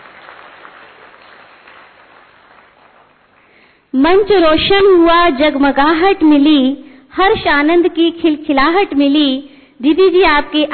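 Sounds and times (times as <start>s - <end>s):
audience applause: 0.0s - 3.6s
speech: 3.9s - 10.7s.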